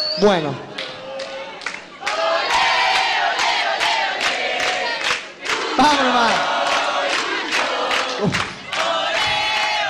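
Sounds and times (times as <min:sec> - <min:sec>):
speech: 0:00.2 - 0:00.7, 0:05.8 - 0:06.5, 0:08.2 - 0:08.5
big crowd of football supporters chanting and shouting: 0:02.0 - 0:09.8.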